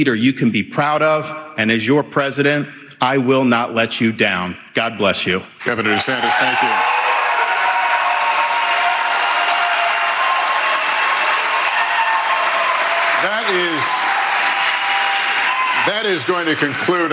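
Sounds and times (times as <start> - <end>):
speech: 0.0 - 7.0, 15.9 - 17.1
debate audience applause: 5.7 - 17.1
whoop: 6.2 - 13.2, 13.9 - 15.9.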